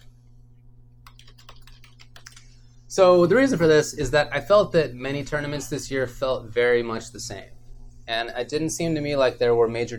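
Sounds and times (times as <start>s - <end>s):
low steady hum: 0.0s - 9.9s
typing on a computer keyboard: 1.0s - 2.4s
speech: 2.9s - 9.9s.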